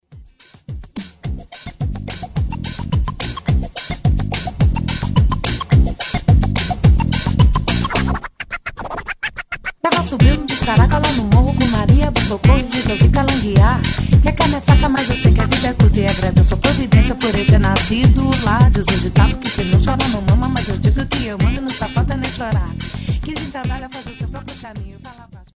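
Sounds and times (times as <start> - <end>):
samba music: 0.3 - 8.3, 9.9 - 25.0.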